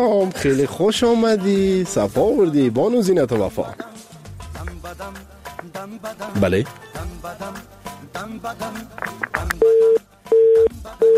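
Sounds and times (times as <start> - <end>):
speech: 0.0 - 4.0, 5.8 - 10.0
garbled phone line audio: 9.2 - 11.1
phone busy tone after a cut-off call: 9.4 - 11.1.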